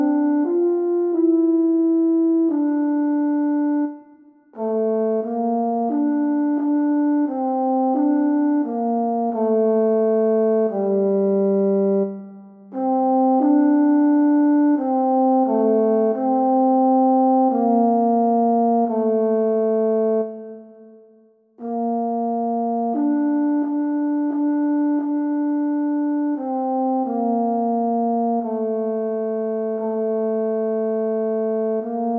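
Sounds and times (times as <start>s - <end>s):
horn: 0.0s - 21.0s, 21.6s - 32.1s.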